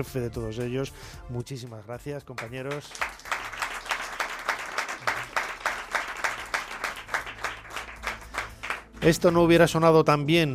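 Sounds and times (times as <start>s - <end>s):
speech: 0.0s - 3.3s, 9.0s - 10.5s
audience applause: 2.4s - 9.2s.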